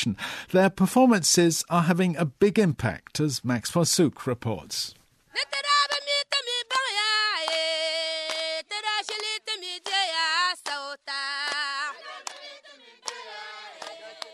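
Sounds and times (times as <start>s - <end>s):
speech: 0.0s - 5.7s
crowd of women singing together: 5.4s - 14.3s
sharp hand claps: 5.8s - 6.2s, 7.4s - 13.2s, 13.8s - 14.3s.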